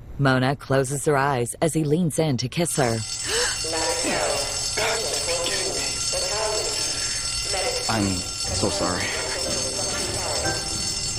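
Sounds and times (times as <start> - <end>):
speech: 0.2 - 3.3, 7.9 - 9.2
firehouse alarm sirens: 2.8 - 11.1.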